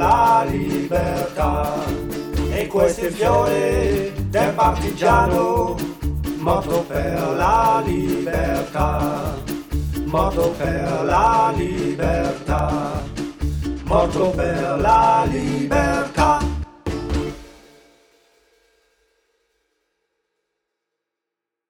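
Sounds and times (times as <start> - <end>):
three-voice choir: 0.0 - 16.9.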